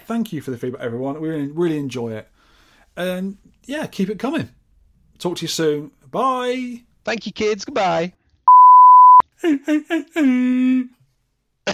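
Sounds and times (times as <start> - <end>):
speech: 0.1 - 2.3, 3.0 - 4.6, 5.2 - 8.2, 9.4 - 11.0
steady high beep tone: 8.5 - 9.2.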